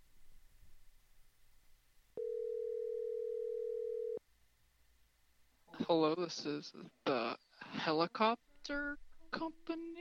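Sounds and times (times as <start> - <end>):
telephone dial tone: 2.2 - 4.2
speech: 5.9 - 7.2, 7.8 - 9.9.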